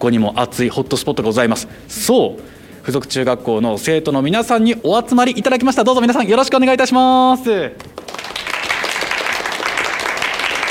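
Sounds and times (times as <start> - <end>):
speech: 0.0 - 7.9
students applauding: 7.8 - 10.7.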